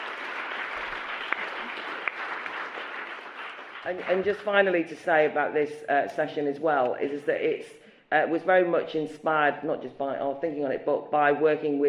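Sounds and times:
audience clapping to welcome a speaker at a debate session: 0.0s - 4.5s
speech: 3.8s - 11.8s.

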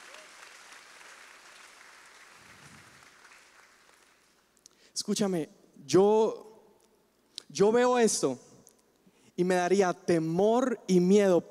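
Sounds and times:
applause: 0.0s - 4.5s
speech: 5.0s - 6.5s, 7.5s - 8.5s, 9.4s - 11.4s.

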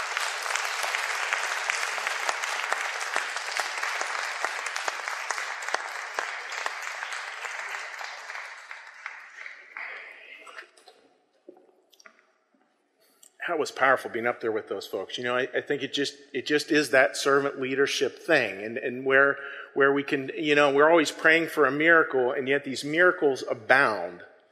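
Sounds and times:
audience applause: 0.0s - 10.6s
speech: 13.5s - 24.3s.

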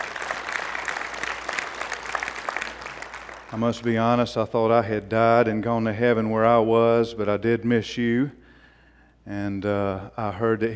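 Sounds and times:
audience clapping: 0.0s - 4.3s
speech: 3.5s - 8.4s, 9.3s - 10.7s.

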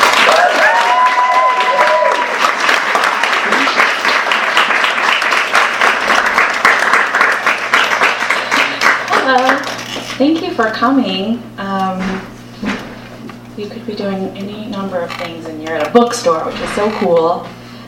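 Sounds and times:
audience applause at a bookstore welcoming two authors: 0.0s - 9.8s
speech: 10.2s - 11.7s, 13.6s - 17.6s.

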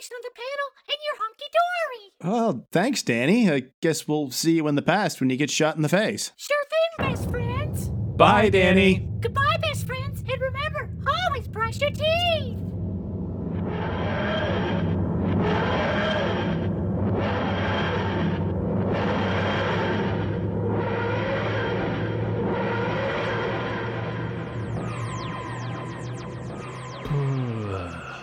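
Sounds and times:
speech: 0.0s - 12.8s
time machine travelling through time with a whooshing throbbing hum: 7.0s - 28.2s.

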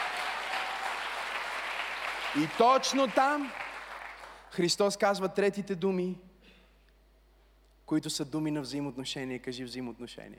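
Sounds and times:
audience applause: 0.0s - 4.4s
speech: 2.3s - 3.6s, 4.5s - 6.3s, 7.9s - 10.3s.

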